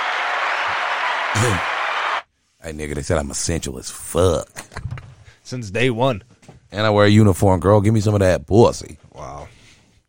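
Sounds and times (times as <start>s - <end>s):
round of applause: 0.0s - 2.2s
speech: 1.4s - 1.7s, 2.6s - 4.8s, 5.5s - 9.4s.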